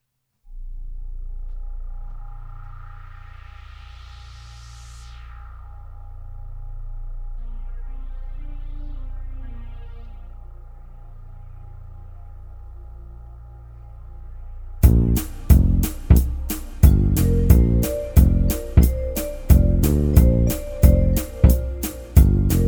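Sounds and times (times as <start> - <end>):
soundcheck: 14.8 - 22.6.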